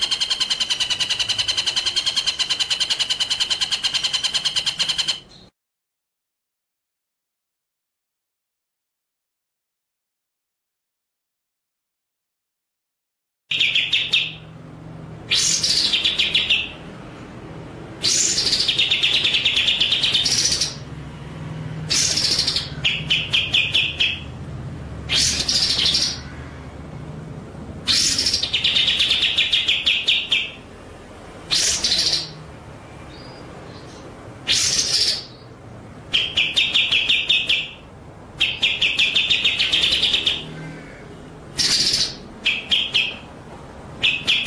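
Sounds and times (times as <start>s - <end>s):
white-rumped shama song with buzzy trills and harsh bursts: 0.0s - 5.5s, 13.5s - 17.0s, 18.0s - 21.0s, 21.8s - 24.4s, 25.0s - 26.7s, 27.9s - 30.8s, 31.4s - 43.4s, 44.0s - 44.4s.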